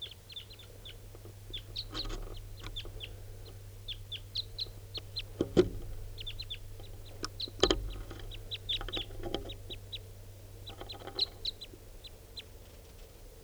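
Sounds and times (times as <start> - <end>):
wild birds calling: 0.0 - 13.0.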